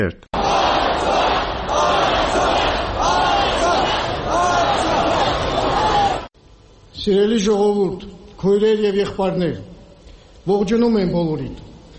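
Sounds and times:
speech: 0.0s - 0.3s, 7.0s - 9.7s, 10.4s - 11.7s
crowd chanting at a rally in Artsakh: 0.4s - 6.3s.

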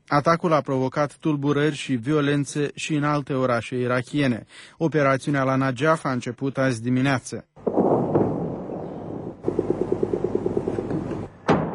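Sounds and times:
speech: 0.1s - 7.7s
loud gunshot crack from helicopter: 7.7s - 11.7s
American helicopter rumbling roar: 7.8s - 11.4s.

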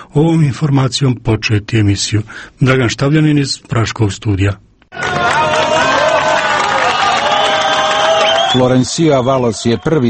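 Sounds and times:
speech: 0.1s - 5.4s, 8.5s - 10.0s
gathered crowd clapping: 4.9s - 9.6s
excited shouts: 5.0s - 10.0s.

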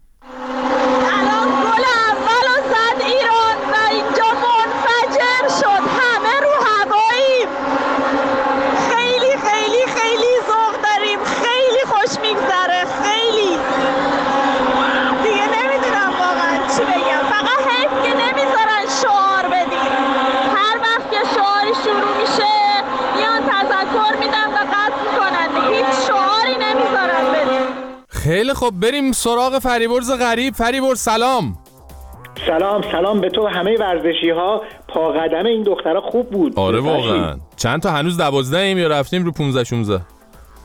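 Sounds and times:
stadium crowd after first goal: 0.3s - 30.4s
speech: 28.8s - 31.6s, 32.4s - 40.1s.

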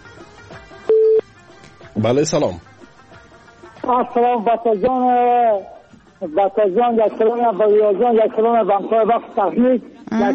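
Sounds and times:
telephone ringing tone as a call connects: 0.9s - 1.2s
speech: 2.0s - 2.7s, 3.9s - 10.3s.

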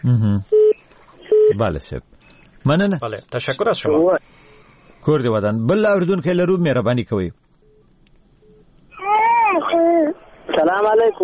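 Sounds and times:
speech: 0.0s - 0.6s, 1.5s - 7.4s, 10.6s - 11.2s
young child crying during a radio call-in: 9.0s - 10.2s.

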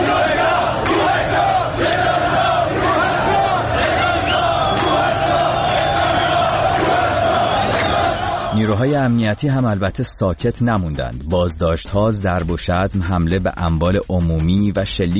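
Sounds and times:
protest crowd chanting a slogan: 0.0s - 8.7s
speech: 8.7s - 15.1s.

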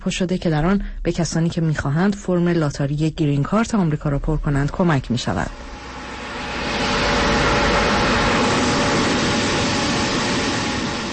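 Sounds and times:
speech: 0.0s - 5.8s
generator running beside a tent: 5.5s - 11.1s.

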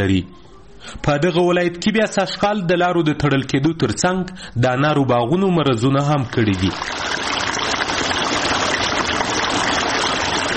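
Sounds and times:
speech: 0.0s - 7.4s
water rushing while irrigating a pomegranate orchard in Sepidkhar near Tarinkot: 6.2s - 10.5s.

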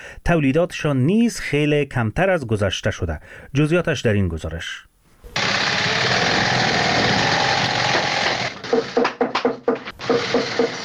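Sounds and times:
speech: 0.2s - 4.9s
shoe factory sewing machines whirring: 5.4s - 9.0s, 9.9s - 10.8s
sharp hammer-like knocks: 7.9s - 10.8s.

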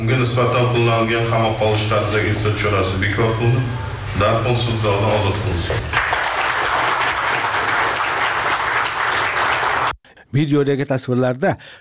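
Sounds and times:
speech: 0.0s - 6.0s, 10.3s - 11.7s
courtroom applause greeting a release decision: 5.7s - 10.0s.

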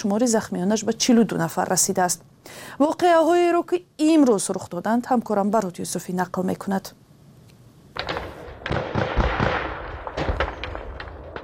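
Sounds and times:
speech: 0.0s - 7.0s
gunfire and artillery on the Tajikistan Kyrgyzstan border: 8.0s - 11.4s.

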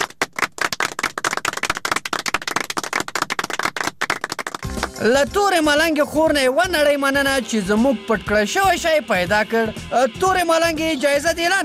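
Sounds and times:
hand clapping for a contestant's correct answer on a quiz game show: 0.0s - 5.2s
speech: 5.0s - 11.6s.

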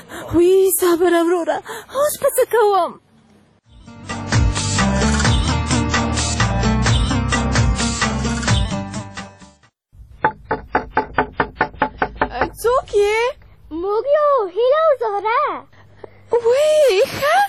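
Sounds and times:
speech: 0.3s - 3.0s, 12.6s - 15.7s, 16.3s - 17.4s
loud music: 3.8s - 9.6s
knocking on a door: 10.2s - 12.7s.

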